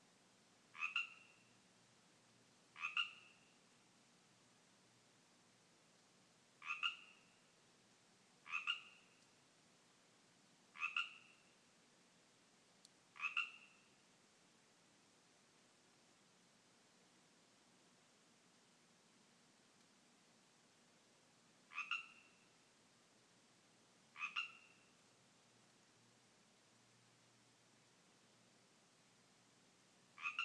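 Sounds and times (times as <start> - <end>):
Pacific tree frogs calling in a yard: 0.7 - 1.6, 2.7 - 3.6, 6.6 - 7.5, 8.4 - 9.3, 10.7 - 11.6, 13.1 - 14.0, 21.7 - 22.5, 24.1 - 25.0, 30.2 - 30.4.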